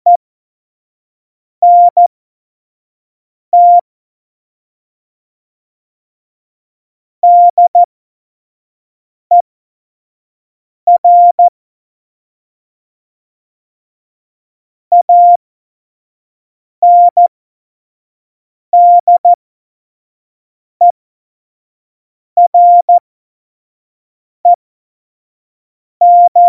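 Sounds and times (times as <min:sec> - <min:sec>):
Morse code course beeps: 0:01.6 - 0:02.0, 0:03.6 - 0:03.8, 0:07.2 - 0:07.9, 0:10.9 - 0:11.5, 0:14.9 - 0:15.4, 0:16.8 - 0:17.3, 0:18.8 - 0:19.4, 0:22.4 - 0:23.0, 0:26.0 - 0:26.4.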